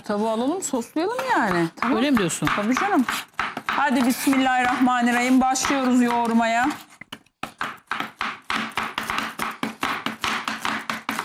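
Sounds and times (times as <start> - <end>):
speech: 0.0 - 6.9
knife chopping: 1.0 - 11.2.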